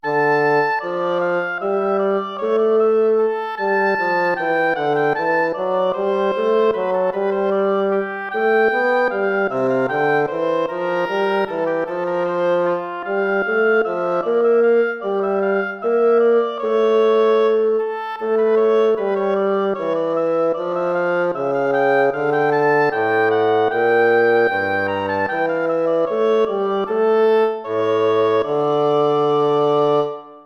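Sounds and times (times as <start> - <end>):
air and hornpipe tune: 0.0 - 30.4.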